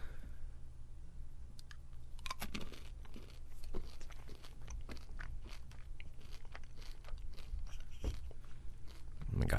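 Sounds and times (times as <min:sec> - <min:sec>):
steady low hum: 0:00.0 - 0:09.5
someone crunching and chewing a single blue M&M chocolate candy: 0:01.6 - 0:09.5.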